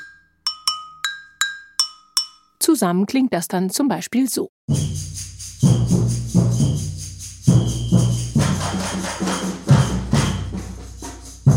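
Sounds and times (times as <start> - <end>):
agogô bell being struck: 0.0 - 2.6, 4.7 - 11.5
speech: 2.6 - 5.2.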